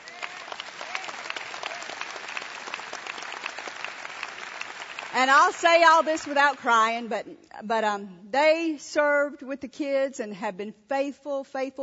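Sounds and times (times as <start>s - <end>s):
audience applauding: 0.0s - 6.8s
speech: 5.2s - 11.8s.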